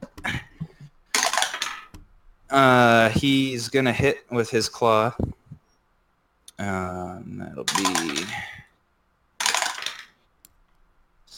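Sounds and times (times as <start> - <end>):
dice rolling across a hard surface: 1.1 - 2.0, 7.7 - 8.4, 9.4 - 10.2
speech: 2.5 - 5.4, 6.6 - 8.6.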